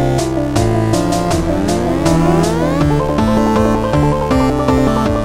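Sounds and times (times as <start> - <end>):
chiptune music: 0.1 - 5.1.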